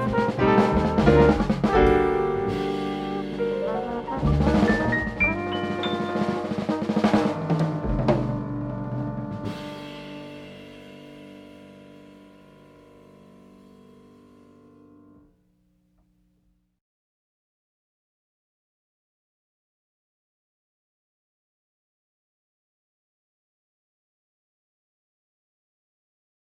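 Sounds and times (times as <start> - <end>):
flugelhorn: 0.0 - 11.2.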